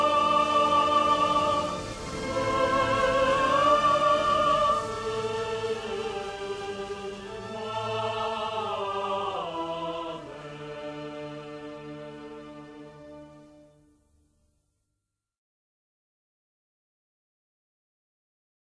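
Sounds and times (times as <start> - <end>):
national anthem: 0.0 - 14.1.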